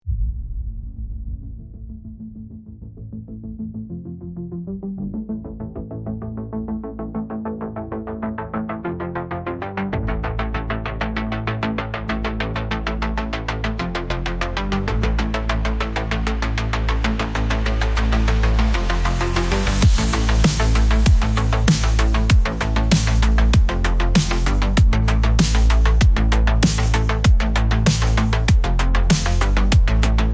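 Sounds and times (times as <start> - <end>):
aggressive music: 6.6 - 30.3.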